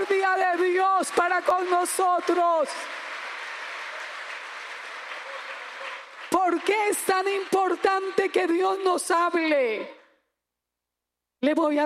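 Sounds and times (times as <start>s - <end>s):
speech: 0.0s - 3.1s, 6.5s - 10.0s, 11.4s - 11.8s
audience applause: 0.0s - 8.1s.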